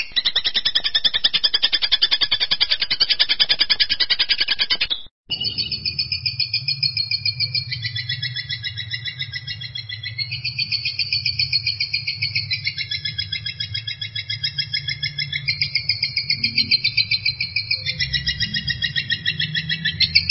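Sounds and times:
long-tailed shrike harsh chattering song: 0.0s - 20.2s.

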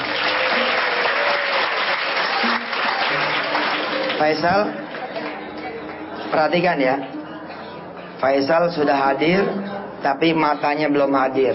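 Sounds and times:
audience applause: 0.0s - 6.1s
speech: 4.2s - 4.8s, 6.3s - 7.2s, 8.2s - 11.5s.

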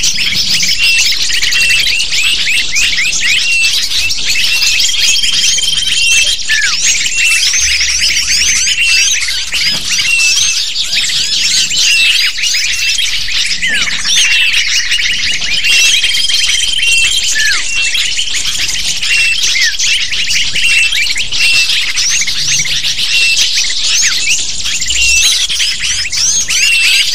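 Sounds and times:
lovebirds squeaking and chirping en masse: 0.0s - 27.1s.

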